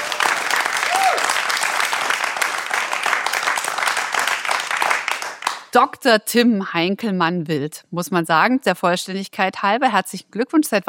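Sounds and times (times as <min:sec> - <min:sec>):
live audience applause: 0:00.0 - 0:05.7
speech: 0:05.8 - 0:10.8.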